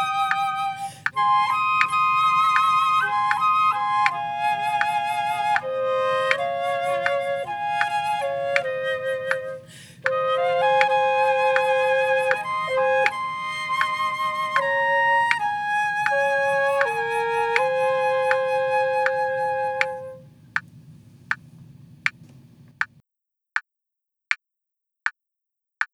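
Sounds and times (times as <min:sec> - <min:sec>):
wind instrument duet: 0:00.0 - 0:20.3.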